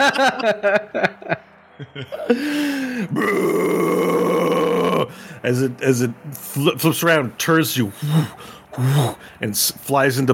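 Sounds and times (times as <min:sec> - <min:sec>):
laughter: 0:00.0 - 0:03.2
speech: 0:00.0 - 0:04.2, 0:05.4 - 0:10.3
person yelling imitating a dragon roar: 0:03.0 - 0:05.2.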